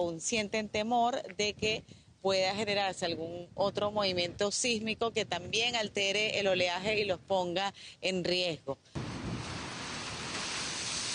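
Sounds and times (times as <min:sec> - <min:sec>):
strong wind on the coast buffeting the microphone: 0:00.0 - 0:07.5, 0:09.0 - 0:11.1
speech: 0:00.0 - 0:09.0.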